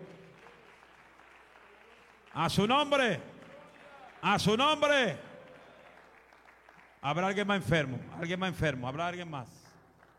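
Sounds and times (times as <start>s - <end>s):
audience applause: 0.0s - 7.0s
speech: 2.3s - 3.3s, 4.2s - 5.3s, 7.0s - 9.6s.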